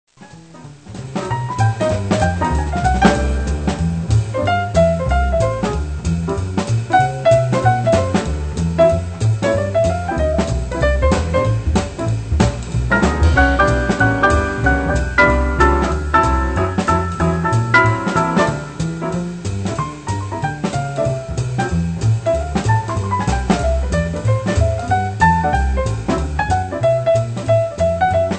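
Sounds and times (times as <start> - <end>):
piano: 0.1 - 28.3.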